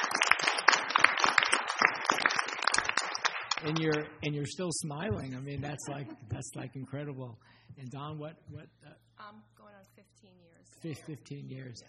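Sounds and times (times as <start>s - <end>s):
audience applause: 0.0s - 4.2s
speech: 3.6s - 9.5s, 10.2s - 11.8s.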